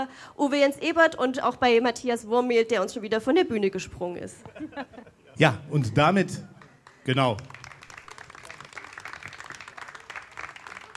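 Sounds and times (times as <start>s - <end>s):
speech: 0.0s - 6.5s, 7.1s - 7.6s
laughter: 4.4s - 6.1s
audience applause for the board: 6.6s - 10.9s.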